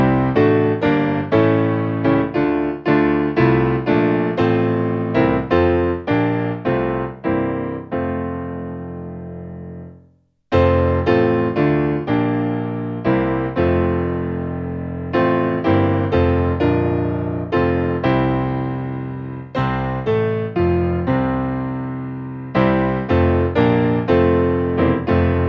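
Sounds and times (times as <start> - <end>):
hymn played on piano: 0.0 - 25.4.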